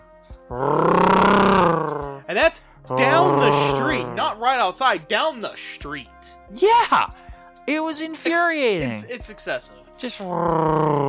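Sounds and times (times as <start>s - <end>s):
speech: 0.5s - 0.8s, 2.4s - 3.7s, 4.3s - 11.0s
voice imitating a lifted truck engine revving: 0.5s - 2.3s, 2.9s - 4.2s, 10.4s - 11.0s.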